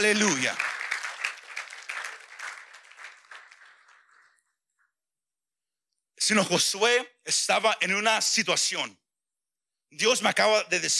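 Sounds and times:
speech: 0:00.0 - 0:00.7, 0:06.2 - 0:09.0, 0:09.9 - 0:10.9
audience applause: 0:00.0 - 0:04.6.

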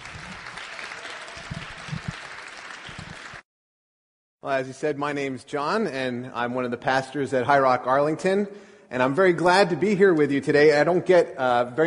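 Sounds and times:
audience applause welcoming speaker: 0:00.0 - 0:03.4
speech: 0:04.4 - 0:11.8.

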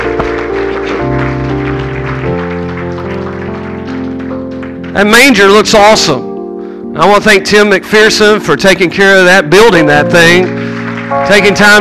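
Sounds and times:
audience clapping: 0:00.0 - 0:06.0, 0:09.8 - 0:11.7
sustained keyboard or organ chords: 0:00.0 - 0:11.7
speech: 0:05.0 - 0:06.3, 0:07.0 - 0:11.7.

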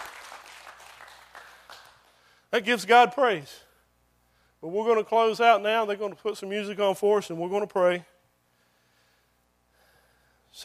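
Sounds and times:
crowd applauding: 0:00.0 - 0:02.2
speech: 0:02.5 - 0:03.6, 0:04.6 - 0:08.1.

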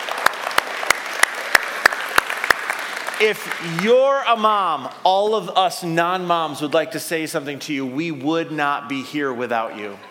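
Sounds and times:
one person's sharp claps: 0:00.0 - 0:03.8
audience applause: 0:00.0 - 0:03.9
speech: 0:03.2 - 0:10.0.

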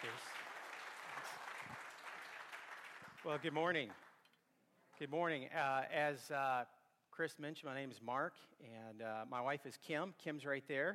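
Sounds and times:
speech: 0:00.0 - 0:00.4, 0:03.2 - 0:04.0, 0:05.0 - 0:10.9
church audience applause: 0:00.0 - 0:04.1.

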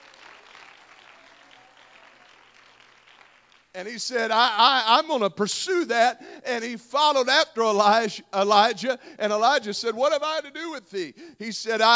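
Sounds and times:
audience clapping: 0:00.0 - 0:04.0
speech: 0:03.8 - 0:11.9.

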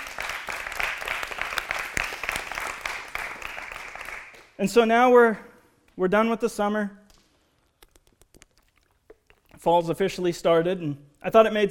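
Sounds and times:
crowd applauding: 0:00.0 - 0:04.5
speech: 0:04.6 - 0:07.0, 0:09.6 - 0:11.6.

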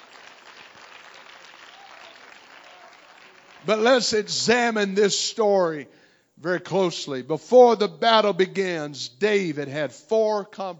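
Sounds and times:
audience clapping hands: 0:00.0 - 0:04.3
speech: 0:03.6 - 0:10.7.

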